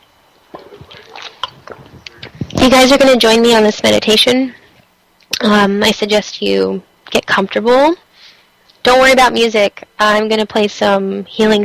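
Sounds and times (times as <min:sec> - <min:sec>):
person sipping water: 0:00.5 - 0:02.6
swallowing: 0:00.5 - 0:02.6
speech: 0:02.6 - 0:04.6, 0:05.4 - 0:08.0, 0:08.8 - 0:11.6.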